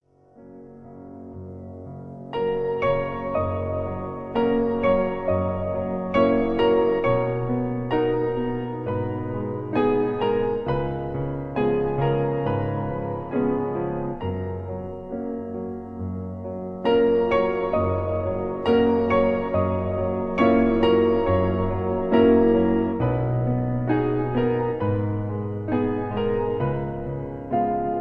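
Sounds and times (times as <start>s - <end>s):
piano: 0.0s - 28.0s.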